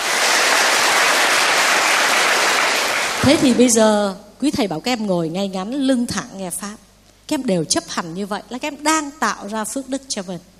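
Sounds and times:
audience applause: 0.0 - 3.6
speech: 3.2 - 10.5.

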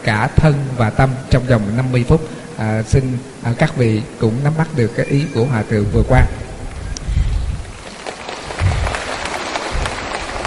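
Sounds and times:
speech: 0.0 - 6.4
audience applause at a Buddhist talk on overcoming illness: 7.8 - 10.4.

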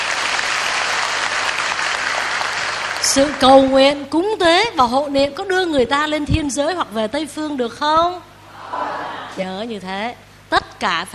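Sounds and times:
audience applause: 0.0 - 3.5
speech: 3.0 - 8.8, 9.4 - 11.1
laughter: 8.5 - 9.4.

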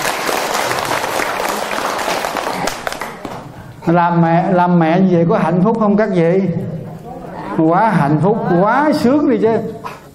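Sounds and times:
audience applauding at a celebration honouring mothers: 0.0 - 3.6
speech: 3.9 - 6.8, 7.6 - 9.8.

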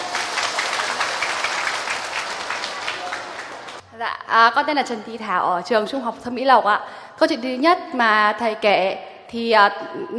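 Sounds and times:
crowd applause: 0.0 - 3.8
speech: 4.0 - 10.1.

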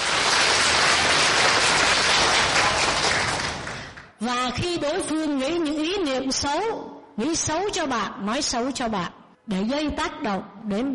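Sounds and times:
crowd applauding: 0.0 - 4.2
speech: 4.2 - 10.9.

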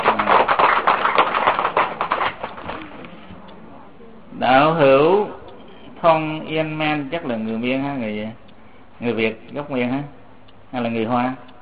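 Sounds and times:
crowd applause: 0.0 - 3.3
speech: 6.2 - 8.4, 9.0 - 11.5.

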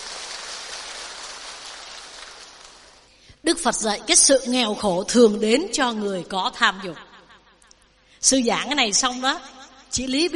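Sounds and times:
audience applause: 0.0 - 3.1
speech: 3.4 - 7.1, 8.2 - 10.3.

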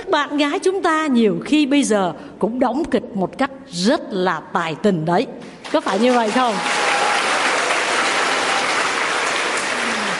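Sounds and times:
speech: 0.1 - 6.8
crowd of young men clapping: 5.8 - 10.1.

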